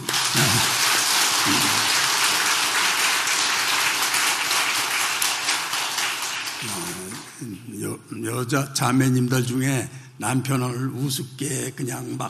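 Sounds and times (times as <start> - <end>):
audience applause: 0.0 - 7.4
low voiced sounds: 0.1 - 1.9, 6.6 - 8.1
speech: 8.2 - 12.2.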